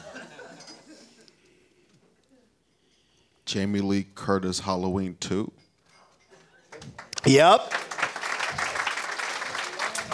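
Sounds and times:
speech: 3.5 - 5.6, 7.2 - 7.8
applause: 6.7 - 10.1.

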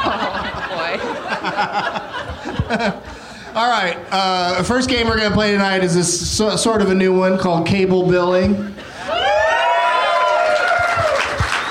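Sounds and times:
laughter: 0.0 - 3.3
speech: 1.4 - 8.8
audience cheering: 9.0 - 11.6.

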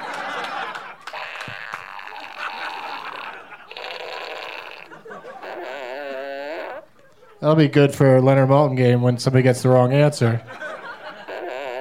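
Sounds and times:
laughter: 0.0 - 6.2, 10.4 - 11.7
fart fanfare sound effect toy: 1.1 - 6.9, 11.2 - 11.7
speech: 7.4 - 10.6.

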